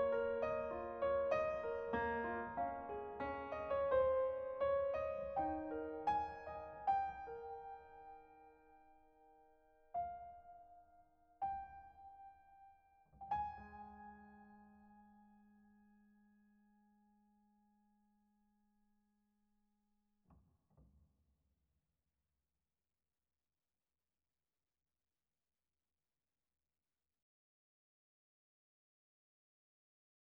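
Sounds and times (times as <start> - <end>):
piano: 0.0 - 18.2.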